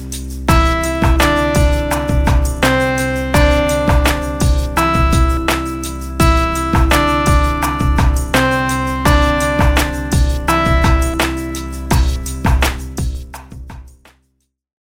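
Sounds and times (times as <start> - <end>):
simple melodies in C major: 0.5 - 13.3.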